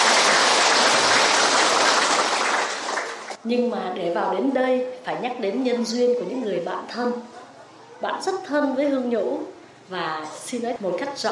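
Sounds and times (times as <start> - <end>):
crowd applause: 0.0 - 3.4
speech: 3.4 - 7.4, 8.0 - 11.3.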